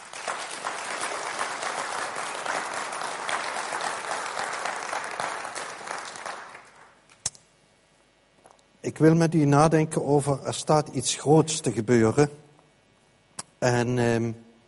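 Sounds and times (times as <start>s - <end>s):
audience applause: 0.0s - 7.0s
speech: 8.9s - 12.4s, 13.6s - 14.5s.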